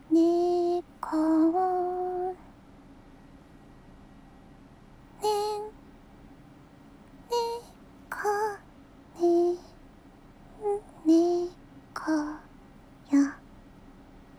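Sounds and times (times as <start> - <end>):
person singing a lullaby: 0.0 - 2.5, 5.2 - 5.8, 7.3 - 8.6, 9.2 - 9.8, 10.6 - 12.5, 13.1 - 13.4.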